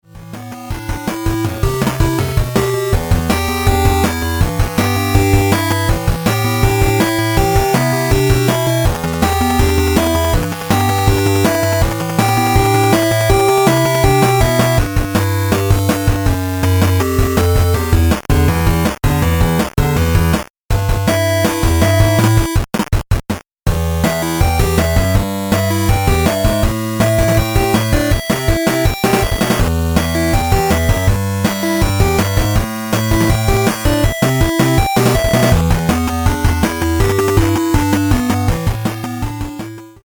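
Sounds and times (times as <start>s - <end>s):
8-bit radio music: 0.1s - 40.0s.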